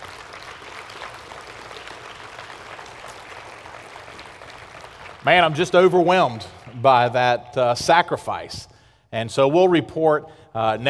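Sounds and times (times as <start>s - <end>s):
audience applause: 0.0s - 6.9s
speech: 5.2s - 10.8s.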